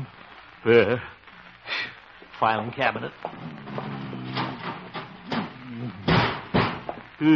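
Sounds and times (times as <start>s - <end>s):
speech: 0.7s - 1.1s, 2.4s - 3.6s
heavy wooden desk scraping across the floor against a door: 3.3s - 5.6s.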